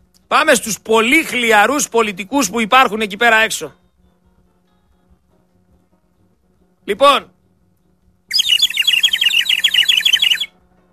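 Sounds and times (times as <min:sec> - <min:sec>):
speech: 0:00.3 - 0:03.8, 0:06.9 - 0:07.3
bird whistle chirping: 0:08.3 - 0:10.6.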